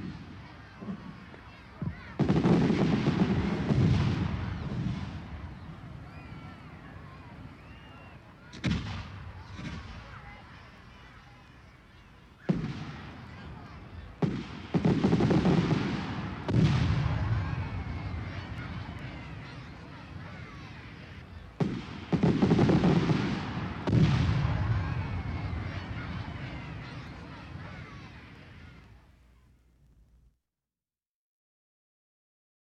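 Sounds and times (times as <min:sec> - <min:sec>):
city fireworks exploding: 0:00.0 - 0:29.0
crowd noise in a big city: 0:00.0 - 0:30.4.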